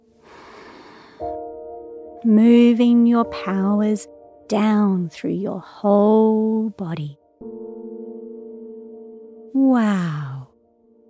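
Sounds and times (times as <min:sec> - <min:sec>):
slow deep breath in a guided calming exercise: 0:00.2 - 0:01.4
speech: 0:02.2 - 0:07.6, 0:09.5 - 0:10.3.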